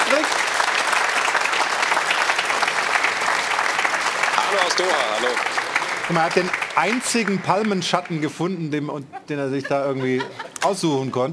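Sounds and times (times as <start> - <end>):
studio audience applause in Munich: 0.0 - 8.4
speech: 4.7 - 11.3
laughter: 9.0 - 11.2.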